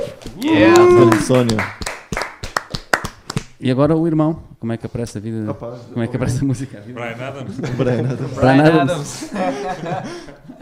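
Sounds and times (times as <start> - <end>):
speech: 0.2 - 1.8, 3.6 - 10.5
audience clapping in a steady rhythm: 0.2 - 3.6
laughter: 7.3 - 10.5.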